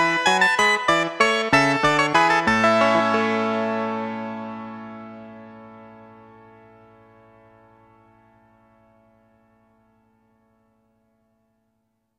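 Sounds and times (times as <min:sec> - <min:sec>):
harpsichord: 0:00.0 - 0:04.7.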